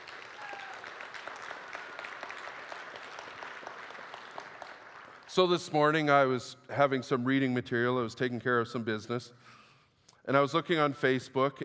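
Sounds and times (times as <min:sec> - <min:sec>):
crowd applauding: 0:00.0 - 0:05.6
speech: 0:05.3 - 0:09.6, 0:10.3 - 0:11.6.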